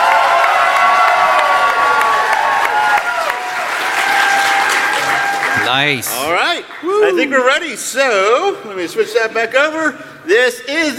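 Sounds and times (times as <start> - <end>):
audience applause and cheering: 0.0 - 7.1
speech: 5.7 - 10.9.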